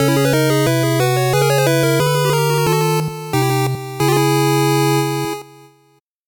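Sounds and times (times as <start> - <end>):
8-bit jingle: 0.0 - 5.5.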